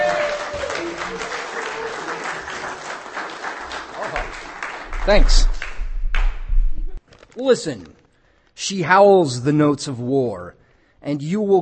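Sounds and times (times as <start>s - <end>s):
audience applause: 0.0s - 6.4s
speech: 5.0s - 5.6s, 7.4s - 8.0s, 8.6s - 11.6s.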